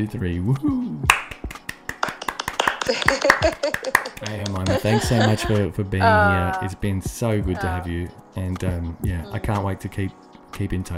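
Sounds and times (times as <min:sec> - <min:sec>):
speech: 0:00.0 - 0:01.2, 0:02.9 - 0:10.9
hand clapping: 0:01.0 - 0:05.6
laughter: 0:02.8 - 0:06.5.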